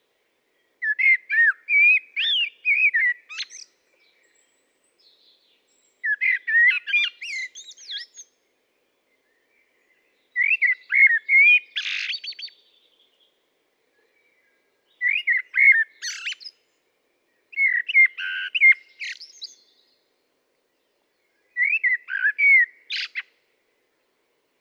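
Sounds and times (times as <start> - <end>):
common blackbird singing: 0.8 - 8.3, 9.2 - 13.2, 14.2 - 16.6, 17.5 - 19.9, 21.5 - 23.3.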